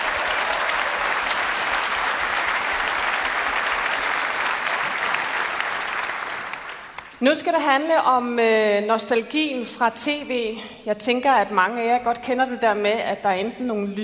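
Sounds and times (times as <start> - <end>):
audience applause: 0.0 - 7.1
speech: 7.2 - 14.0.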